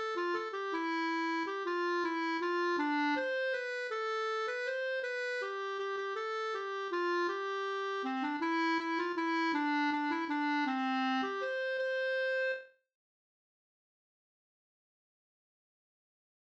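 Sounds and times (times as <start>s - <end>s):
waltz in C major: 0.2s - 12.6s.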